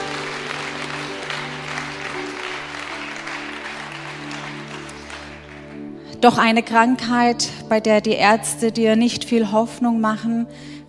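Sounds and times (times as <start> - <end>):
audience applause at a gospel church event: 0.0 - 6.0
speech: 6.2 - 10.8.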